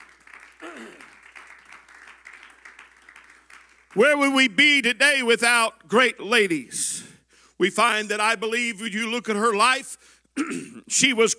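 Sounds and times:
audience clapping: 0:00.0 - 0:04.5
speech: 0:03.9 - 0:07.0, 0:07.6 - 0:11.3.

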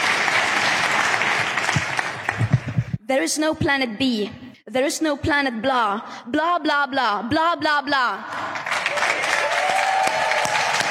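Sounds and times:
crowd applause in played recording: 0:00.0 - 0:02.9, 0:08.6 - 0:10.9
speech: 0:03.1 - 0:08.4.

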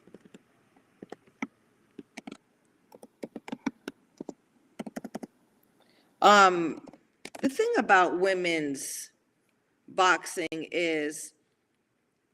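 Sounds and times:
soft keystrokes on a computer keyboard: 0:00.0 - 0:05.3, 0:06.7 - 0:07.5
speech: 0:06.2 - 0:09.1, 0:10.0 - 0:11.4.

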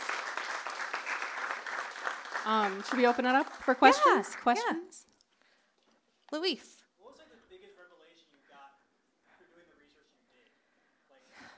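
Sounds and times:
audience applause: 0:00.0 - 0:05.0
speech: 0:02.4 - 0:05.1, 0:06.3 - 0:06.8.

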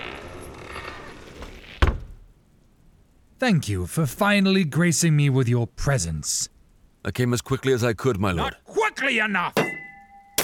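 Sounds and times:
heavy wooden door creaking: 0:00.0 - 0:02.3
heavy wooden door shutting with a deep thud: 0:01.8 - 0:02.2
speech: 0:03.4 - 0:09.6.

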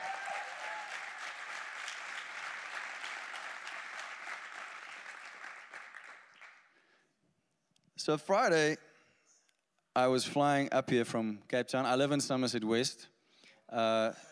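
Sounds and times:
crowd applauding: 0:00.0 - 0:06.7
speech: 0:08.0 - 0:08.8, 0:10.0 - 0:14.2.

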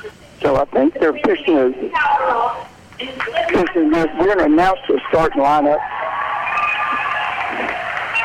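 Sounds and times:
speech: 0:00.5 - 0:05.9
crowd cheering and applauding: 0:05.1 - 0:08.2.

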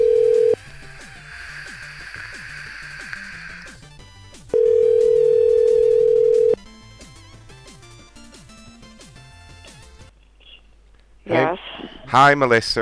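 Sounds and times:
telephone tones while calling to leave a voicemail: 0:00.0 - 0:00.6, 0:04.5 - 0:06.6
speech: 0:12.1 - 0:12.8.

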